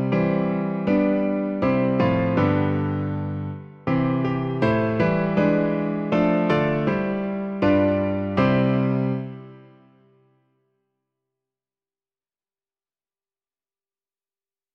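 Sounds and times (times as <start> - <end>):
piano: 0.0 - 10.7.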